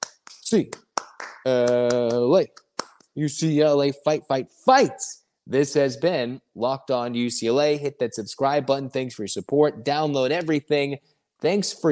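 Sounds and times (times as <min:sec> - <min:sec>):
cheer: 0:00.0 - 0:02.5
rhythmic hand claps: 0:00.0 - 0:03.2
speech: 0:00.5 - 0:00.8, 0:01.4 - 0:02.6, 0:03.2 - 0:11.8.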